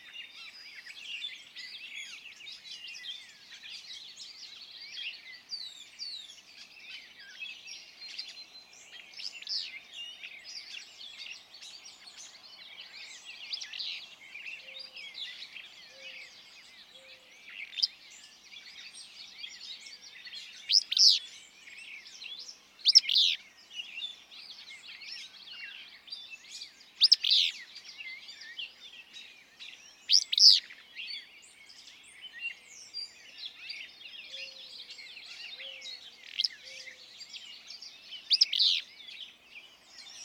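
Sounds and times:
chorus of other birds: 0.0 - 40.2.

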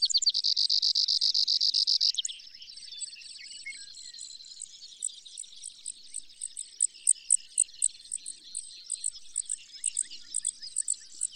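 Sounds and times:
Brewer's sparrow buzzy trill song: 0.0 - 11.3.

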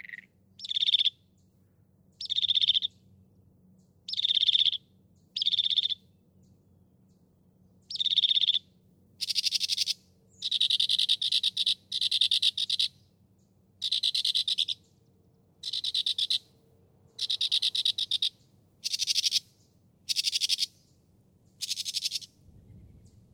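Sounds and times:
Northern Mockingbird singing: 0.0 - 1.2, 2.1 - 3.0, 4.1 - 6.0, 7.8 - 13.1, 13.8 - 15.0, 15.6 - 16.5, 17.1 - 22.3.

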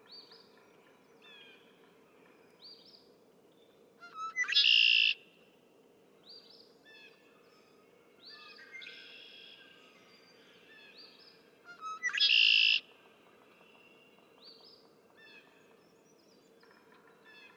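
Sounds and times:
Red-winged Blackbird: 4.2 - 5.2, 12.0 - 12.8.

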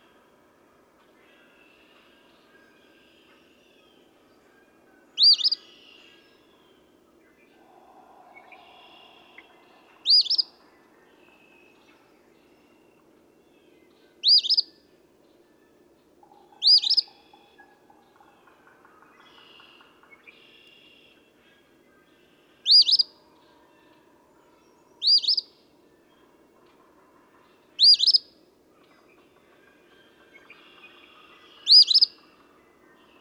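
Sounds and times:
faint bird twitters: 5.2 - 6.0, 14.2 - 14.7, 16.3 - 17.8, 22.6 - 23.1, 25.0 - 25.5, 27.8 - 28.2, 31.0 - 32.3.

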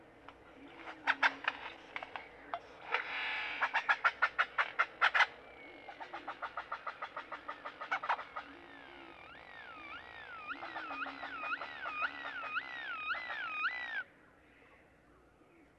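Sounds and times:
great-tailed grackle clacks and whistles: 2.9 - 14.0.

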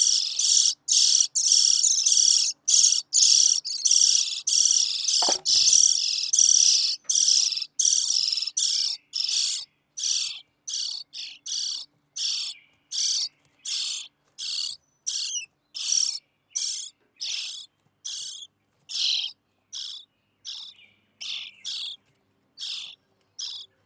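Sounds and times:
European starling calling: 0.0 - 22.0, 22.6 - 23.7.

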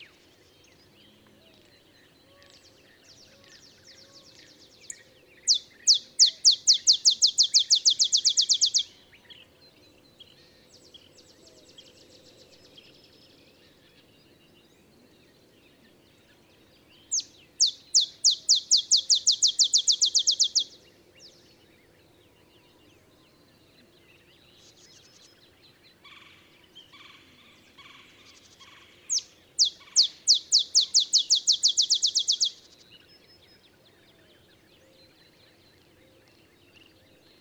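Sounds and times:
olive sparrow song of chips: 4.3 - 8.9, 17.0 - 20.8, 28.3 - 32.8.

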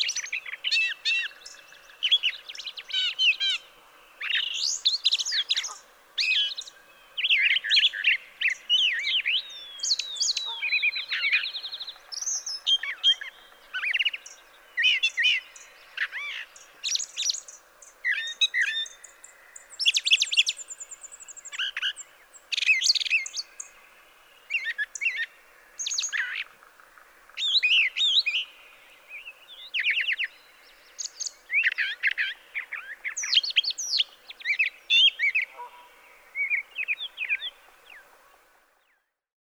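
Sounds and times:
brown thrasher singing: 0.0 - 39.2.

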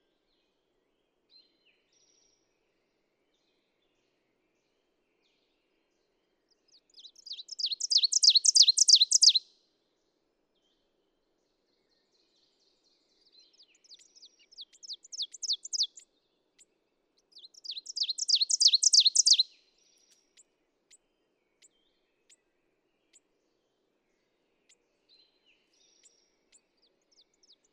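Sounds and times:
ovenbird song: 7.0 - 9.4, 13.6 - 16.0, 17.3 - 20.5.

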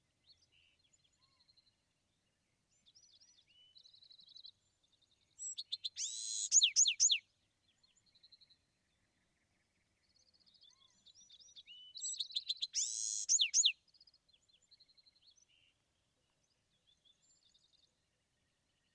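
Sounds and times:
Bewick's wren singing: 5.4 - 7.2, 11.9 - 13.8.

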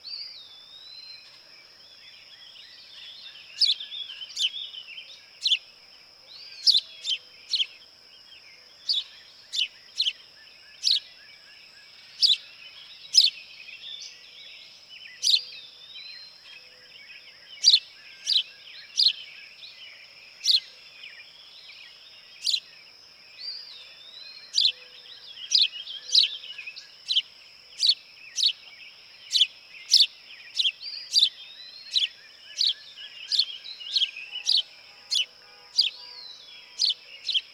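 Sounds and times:
House Sparrow calling: 2.8 - 5.7, 6.4 - 7.8, 8.8 - 14.2, 15.1 - 16.5, 17.6 - 19.3, 20.4 - 21.6, 22.3 - 22.7, 23.4 - 37.5.

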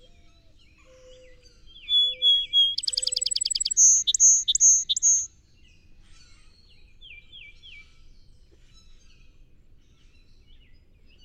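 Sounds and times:
Song Sparrow singing: 1.4 - 5.3.

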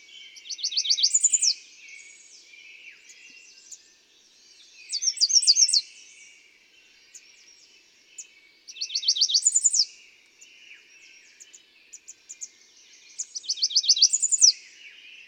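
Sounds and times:
American redstart singing: 0.0 - 15.2.

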